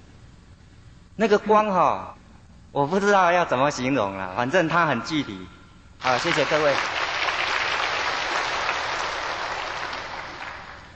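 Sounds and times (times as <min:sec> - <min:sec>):
speech: 0:01.2 - 0:07.0
applause: 0:06.0 - 0:10.9.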